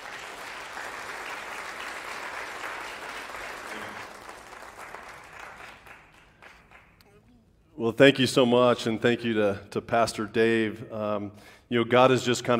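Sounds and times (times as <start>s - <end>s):
audience applause greeting a guest preacher: 0.0s - 7.0s
speech: 7.8s - 12.5s.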